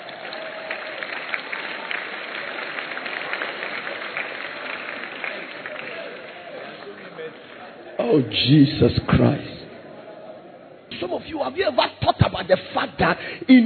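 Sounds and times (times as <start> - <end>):
congregation clapping during a church sermon: 0.0 - 8.0
speech: 8.1 - 9.5, 11.0 - 13.6.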